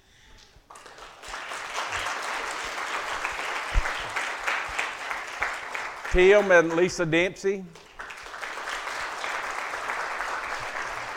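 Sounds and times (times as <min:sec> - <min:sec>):
audience applause in a church: 0:00.7 - 0:11.1
speech: 0:06.1 - 0:07.8.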